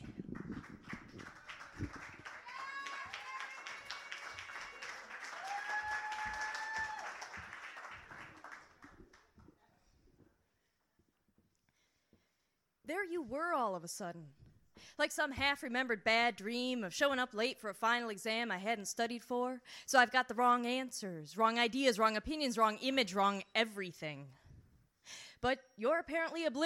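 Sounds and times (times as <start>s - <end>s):
audience applause: 0.0s - 9.3s
speech: 13.0s - 24.4s, 25.0s - 26.6s.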